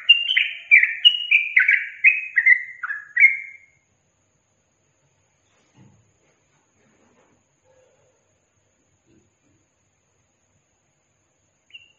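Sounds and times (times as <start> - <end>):
yellow-vented bulbul singing chattering slurred phrases: 0.0 - 3.8, 11.7 - 11.9.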